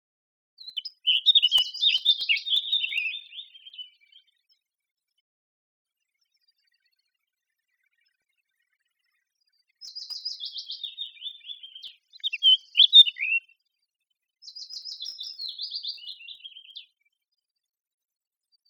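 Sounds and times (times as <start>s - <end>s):
Eurasian blackcap song: 0.6s - 4.4s, 9.8s - 13.5s, 14.4s - 17.0s.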